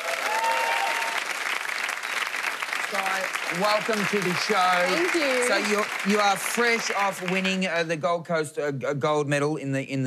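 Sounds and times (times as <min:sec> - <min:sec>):
audience applause for a Commonwealth Games gold medal boxing champion: 0:00.0 - 0:07.9
speech: 0:02.9 - 0:10.0.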